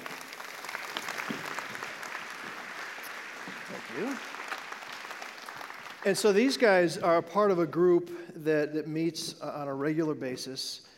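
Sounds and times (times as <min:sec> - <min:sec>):
audience applause: 0:00.0 - 0:06.9
speech: 0:03.9 - 0:04.4, 0:06.0 - 0:10.9.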